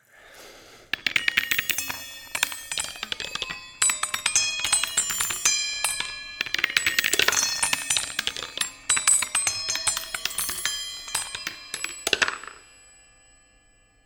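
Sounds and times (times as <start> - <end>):
wooden ball tumbling through metallic chime plates: 0.9 - 13.9.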